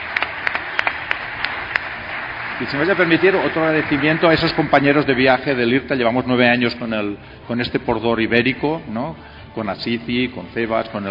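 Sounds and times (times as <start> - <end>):
sparse handclaps: 0.0 - 5.0
speech: 2.6 - 11.0.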